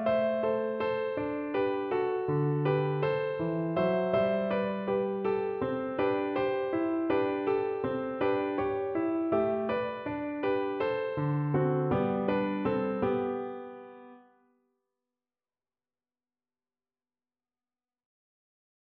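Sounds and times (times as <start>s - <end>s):
piano piece: 0.0s - 14.5s.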